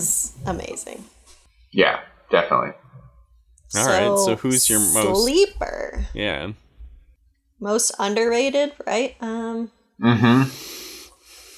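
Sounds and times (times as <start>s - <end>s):
speech: 0.0s - 2.8s, 3.7s - 6.6s, 7.6s - 10.8s
heavy wheezy breathing: 10.2s - 11.5s.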